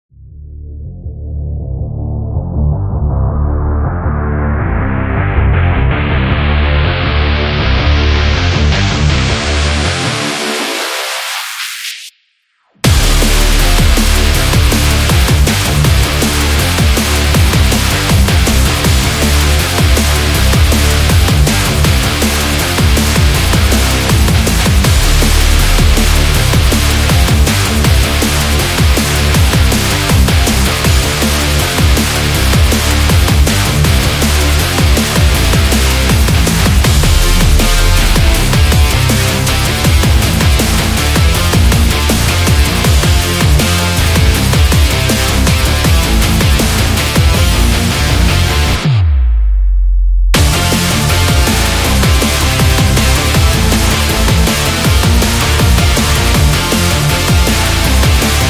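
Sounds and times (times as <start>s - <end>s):
extreme sport action music: 0.4s - 58.4s.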